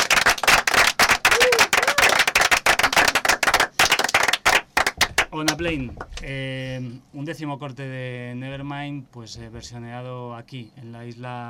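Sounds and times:
audience applause: 0.0s - 5.3s
speech: 5.4s - 11.4s.

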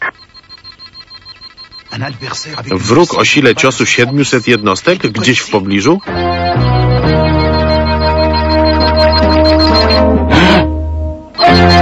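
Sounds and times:
electronic alarm beeping in a cartoon: 0.0s - 10.7s, 11.3s - 11.8s
speech: 2.0s - 6.7s.

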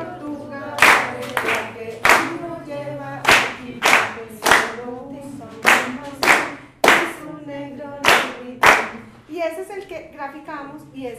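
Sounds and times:
hands clapping a rhythm in a music teaching session: 0.7s - 2.5s, 3.2s - 4.9s, 5.5s - 7.4s, 8.0s - 9.1s.

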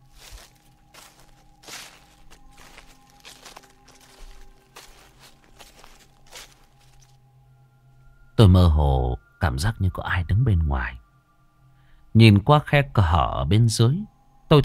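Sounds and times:
footsteps outside a door: 0.0s - 7.2s
speech: 8.4s - 11.0s, 12.2s - 14.6s.

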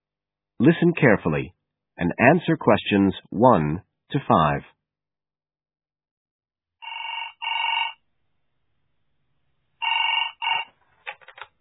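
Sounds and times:
speech: 0.6s - 4.8s
telephone ringing: 6.8s - 8.0s, 9.8s - 11.4s.

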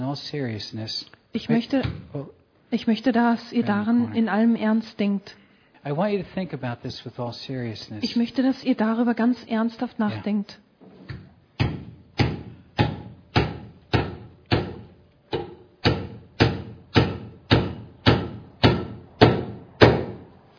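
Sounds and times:
speech: 0.1s - 10.6s
hammer driving nails through paper: 11.6s - 20.2s.

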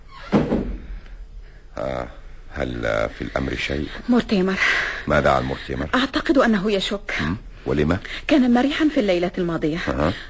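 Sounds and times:
door pulled shut with a dull thud: 0.2s - 0.9s
speech: 1.8s - 10.2s.

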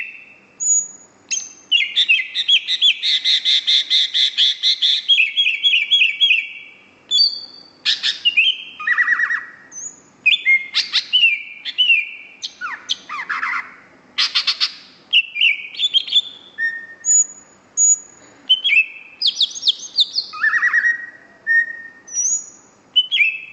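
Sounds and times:
greater green leafbird singing whistles and rattling trills: 0.0s - 23.5s.

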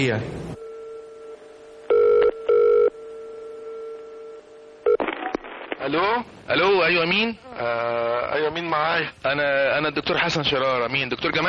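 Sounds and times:
speech: 0.0s - 0.5s, 5.8s - 11.4s
telephone ringing while a call is placed: 1.9s - 5.5s.

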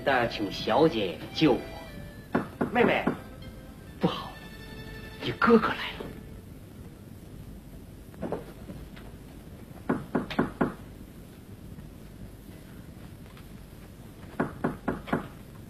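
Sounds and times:
speech: 0.0s - 1.8s, 2.7s - 3.2s, 4.0s - 4.3s, 5.2s - 6.1s
soft wind hiss: 0.0s - 15.6s
sharp hollow knocking on a door: 2.3s - 3.3s, 9.9s - 10.8s, 14.4s - 15.4s.

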